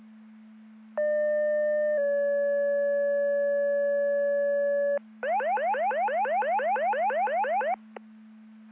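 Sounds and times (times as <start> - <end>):
siren: 1.0 - 7.8.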